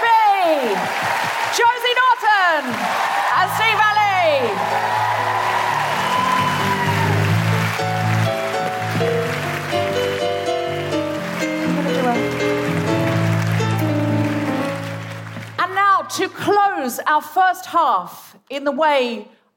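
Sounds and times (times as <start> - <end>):
cheering voices: 0.0 - 9.6
audience applause: 0.0 - 15.6
speech: 0.9 - 1.9, 16.2 - 19.5
band playing: 4.6 - 15.7.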